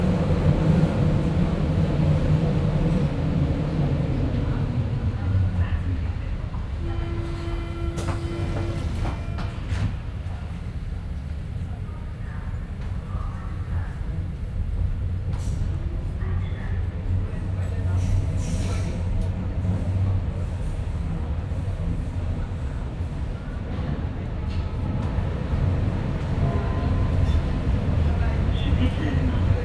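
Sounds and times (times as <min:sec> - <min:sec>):
Berlin U-Bahn underground train: 0:00.0 - 0:29.6.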